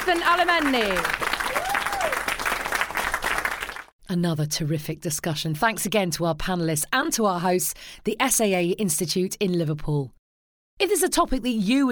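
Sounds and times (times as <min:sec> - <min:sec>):
speech: 0:00.0 - 0:01.2, 0:02.0 - 0:02.2, 0:04.1 - 0:10.2, 0:10.8 - 0:11.9
audience applause: 0:00.0 - 0:03.9.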